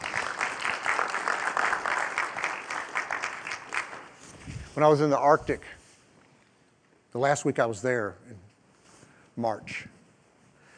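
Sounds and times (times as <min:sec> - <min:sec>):
audience hand clapping: 0:00.0 - 0:04.3
speech: 0:04.8 - 0:05.8, 0:07.1 - 0:08.4, 0:09.4 - 0:09.9.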